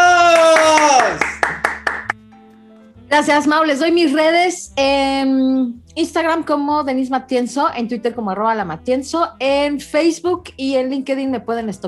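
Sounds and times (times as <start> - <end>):
applause: 0.0 - 2.2
speech: 3.1 - 11.8.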